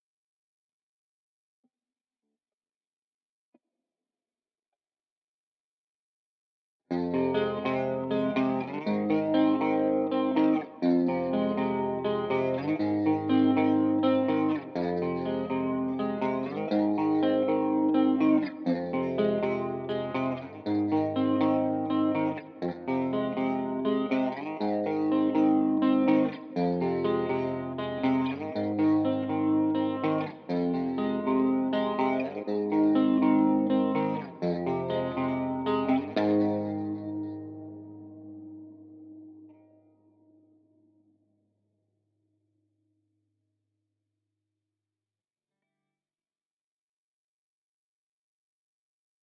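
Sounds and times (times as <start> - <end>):
guitar: 6.9 - 41.1.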